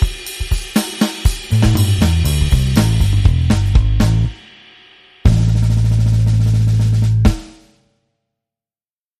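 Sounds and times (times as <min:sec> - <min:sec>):
drum and bass music: 0:00.0 - 0:04.5, 0:05.3 - 0:07.6.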